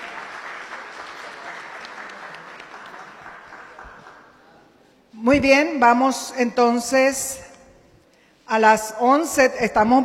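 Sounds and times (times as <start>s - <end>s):
sustained audience applause: 0.0s - 4.3s
speech: 5.2s - 7.4s, 8.5s - 10.0s.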